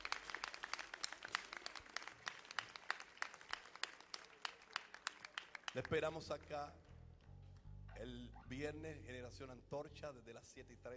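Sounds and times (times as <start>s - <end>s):
applause: 0.0s - 7.4s
speech: 5.8s - 6.9s, 8.0s - 10.9s.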